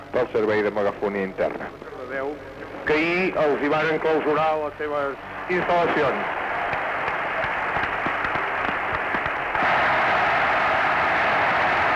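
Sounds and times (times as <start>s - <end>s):
speech: 0.1s - 6.4s
audience applauding: 5.3s - 11.9s.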